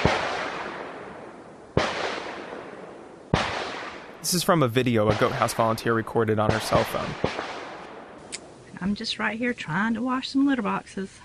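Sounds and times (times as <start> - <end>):
gunshots from a nearby shooting range: 0.0 - 8.3
speech: 4.2 - 7.4, 8.8 - 11.2.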